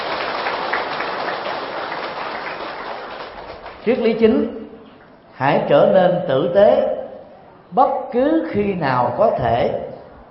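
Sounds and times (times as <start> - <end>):
audience applause: 0.0 - 3.9
speech: 3.8 - 4.6, 5.4 - 6.9, 7.7 - 9.8.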